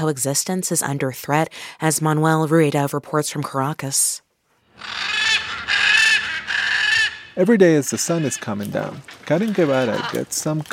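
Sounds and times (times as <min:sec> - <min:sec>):
speech: 0:00.0 - 0:04.2, 0:07.4 - 0:10.7
Blue-and-yellow macaw squawking: 0:04.8 - 0:10.3.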